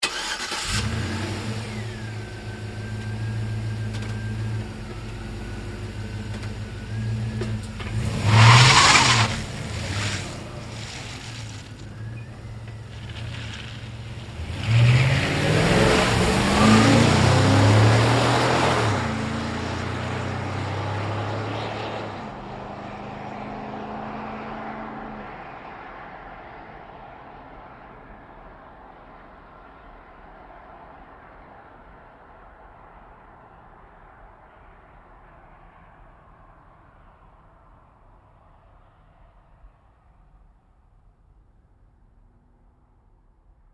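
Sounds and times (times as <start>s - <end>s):
GMC Savana truck starting and driving away fast: 0.0s - 28.5s.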